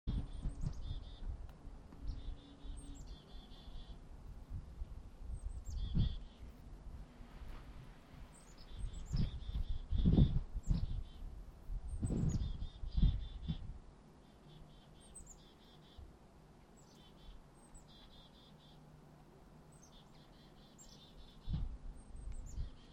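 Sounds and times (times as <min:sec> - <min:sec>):
Eurasian blackbird Turdus merula: 0:00.1 - 0:01.3, 0:02.0 - 0:04.0, 0:05.3 - 0:06.6, 0:08.2 - 0:11.3, 0:11.9 - 0:16.1, 0:16.7 - 0:18.9, 0:19.7 - 0:22.9.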